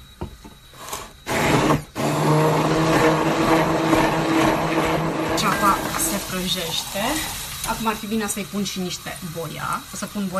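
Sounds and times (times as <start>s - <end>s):
blender running: 0.8s - 8.3s
speech: 6.4s - 10.3s.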